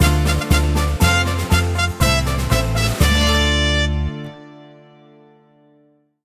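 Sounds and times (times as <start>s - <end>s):
mission win jingle: 0.0s - 4.1s.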